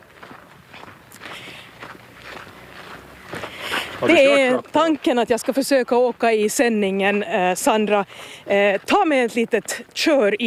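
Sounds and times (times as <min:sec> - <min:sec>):
footsteps of people walking: 0:00.0 - 0:10.4
speech: 0:04.0 - 0:10.4.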